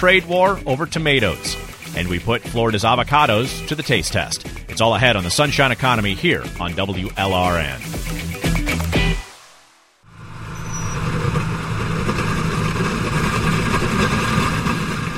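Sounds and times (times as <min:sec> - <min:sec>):
tractor engine: 0:00.0 - 0:08.0, 0:10.1 - 0:15.1
speech: 0:00.0 - 0:08.2
disc harrow dragged through rocky crushed-limestone soil in South Florida: 0:10.4 - 0:15.1.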